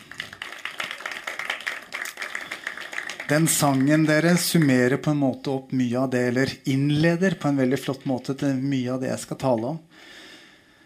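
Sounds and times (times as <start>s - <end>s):
audience applause for the worship team: 0.0s - 4.9s
speech: 3.3s - 10.2s.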